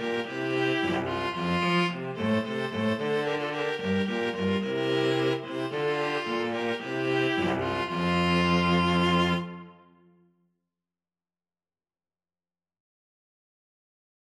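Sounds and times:
flexible mixed ensemble of three players: 0.0s - 9.9s.

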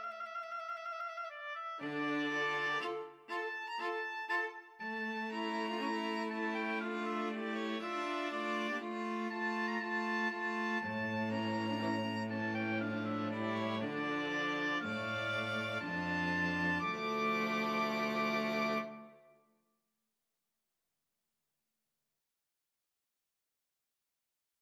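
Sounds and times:
oboe: 0.0s - 19.2s
string trio playing: 1.8s - 19.0s.

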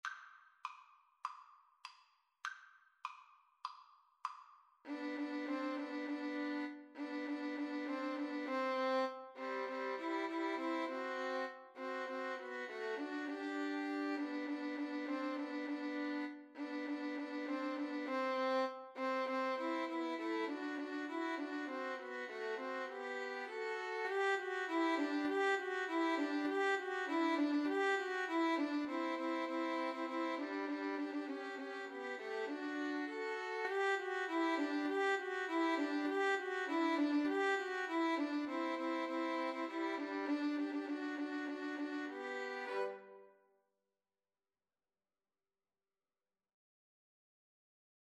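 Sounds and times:
violins playing a Christmas tune: 4.9s - 43.2s.

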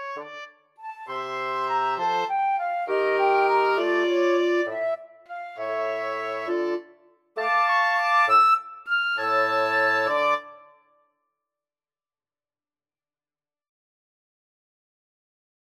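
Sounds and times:
wind quartet playing: 0.0s - 10.6s.

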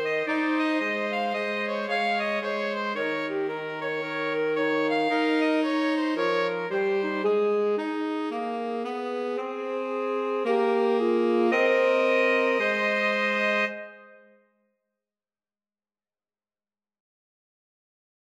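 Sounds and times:
two alto saxophones: 0.0s - 14.4s.

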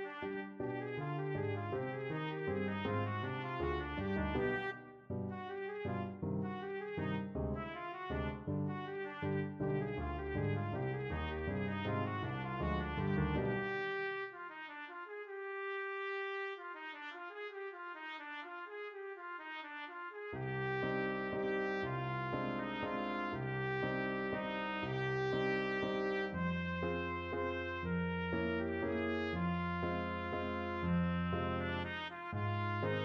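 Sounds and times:
trumpet playing a waltz: 0.0s - 33.0s.

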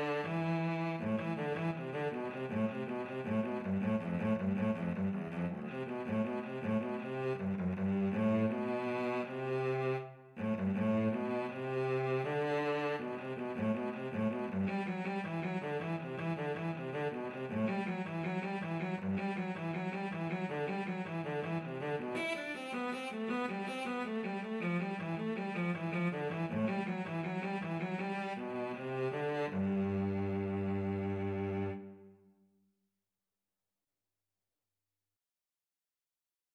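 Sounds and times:
viola and cello duet playing a baroque keyboard invention: 0.0s - 32.0s.

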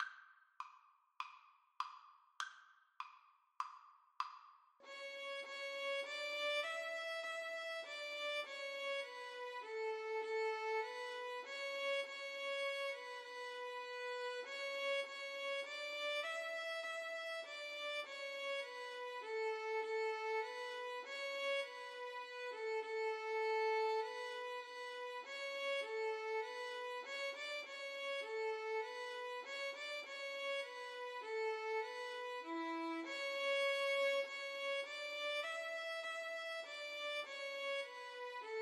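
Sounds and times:
violin duet: 4.9s - 38.6s.

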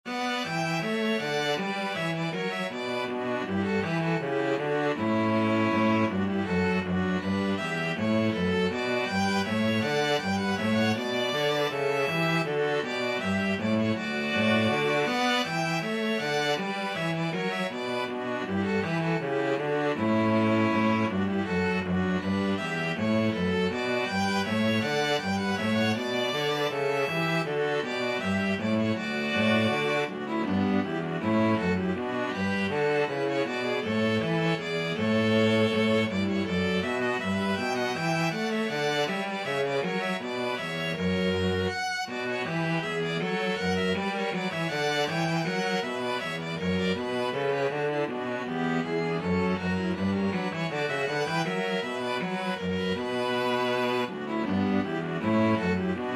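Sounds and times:
string trio playing a bourree: 0.0s - 56.1s.

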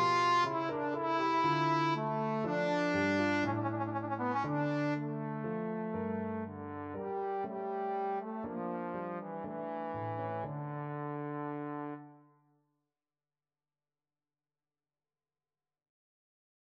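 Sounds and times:
trombone playing a concerto grosso: 0.0s - 12.2s.

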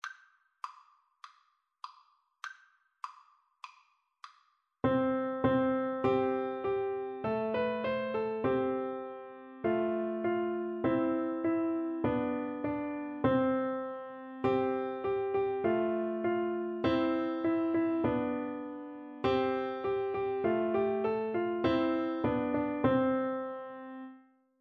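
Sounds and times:
nursery rhyme piano duet: 4.8s - 24.2s.

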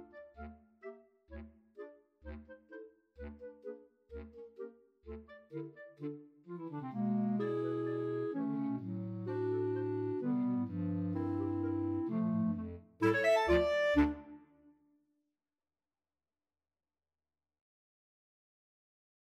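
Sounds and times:
clarinet choir: 5.5s - 14.4s.

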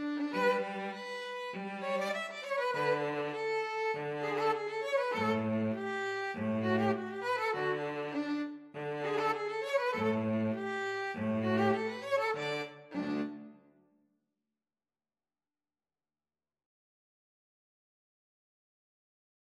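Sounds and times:
neopolitan string trio: 0.0s - 13.6s.

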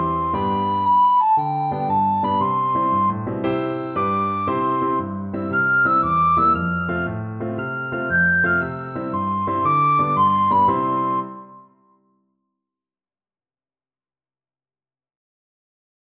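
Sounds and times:
recorder melody: 0.0s - 11.9s.

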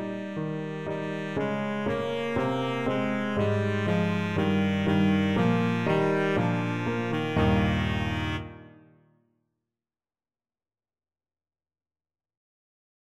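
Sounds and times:
baritone saxophone: 0.0s - 8.8s.

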